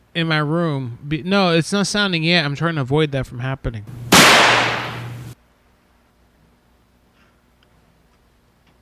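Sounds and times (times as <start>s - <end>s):
speech: 0.2s - 4.0s
fireworks going off: 4.1s - 5.4s.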